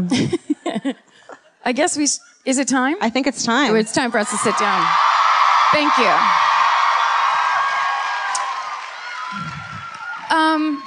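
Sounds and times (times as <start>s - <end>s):
speech: 0.0s - 0.5s, 1.7s - 6.5s
live audience clapping and cheering: 4.2s - 10.8s
sharp high whoop: 4.4s - 10.8s.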